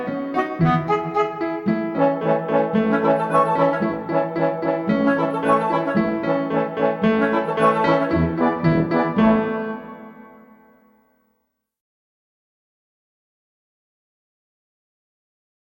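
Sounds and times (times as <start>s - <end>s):
instrumental children's song: 0.0s - 11.0s.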